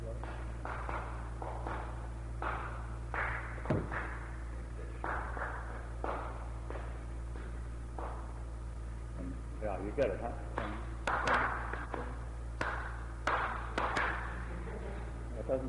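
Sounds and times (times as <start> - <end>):
steady low hum: 0.0 - 15.6
hands clapping a tune's rhythm: 0.1 - 8.4, 10.5 - 14.5
speech: 9.8 - 10.5.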